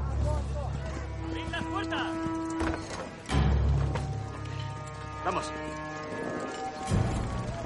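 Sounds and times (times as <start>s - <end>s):
horse hooves clip-clopping: 0.0s - 7.6s
speech: 5.2s - 7.0s.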